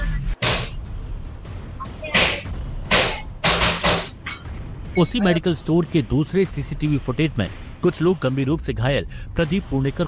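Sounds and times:
gunfire recorded on CCTV: 0.4 - 0.8, 2.1 - 4.3
speech: 5.0 - 10.0.

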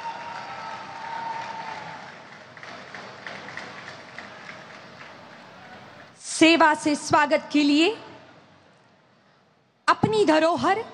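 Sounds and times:
loud applause from audience: 0.0 - 6.2
speech: 6.4 - 8.1, 10.2 - 10.9.

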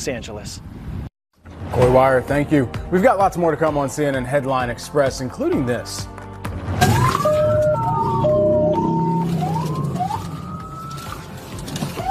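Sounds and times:
speech: 0.0 - 1.0, 1.8 - 7.0
police car siren during a police chase in an Ironman race: 6.8 - 12.0.

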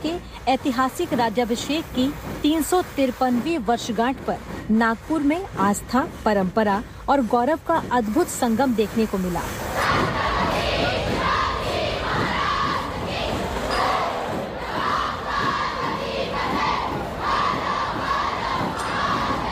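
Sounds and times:
speech: 0.0 - 9.8
steady thudding beat: 0.0 - 19.5
large festive crowd cheering and shouting: 9.8 - 19.5.

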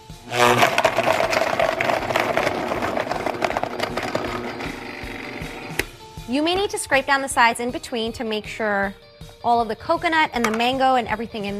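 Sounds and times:
blender blending smoothie: 0.0 - 5.8
speech: 0.1 - 0.7, 6.3 - 11.5.

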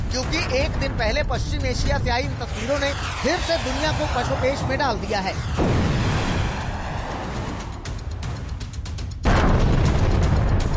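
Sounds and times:
speech: 0.2 - 5.8
loud explosions from missile attack in Kuwait: 1.9 - 7.8, 9.3 - 10.6.

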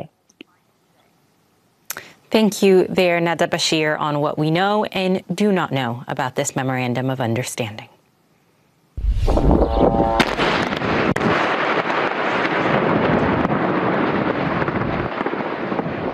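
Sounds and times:
speech: 2.3 - 7.9
sharp crack: 9.0 - 13.7
heavy blast: 9.0 - 16.1
rumbling explosions and artillery fire of military strikes: 9.0 - 16.1.

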